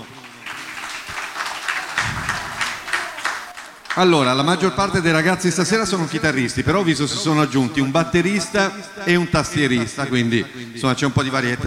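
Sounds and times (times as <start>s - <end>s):
audience applause: 0.0s - 4.5s
speech: 4.0s - 11.6s.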